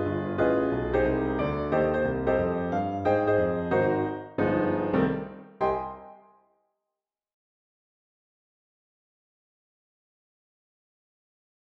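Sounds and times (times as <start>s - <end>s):
piano: 0.0s - 6.5s.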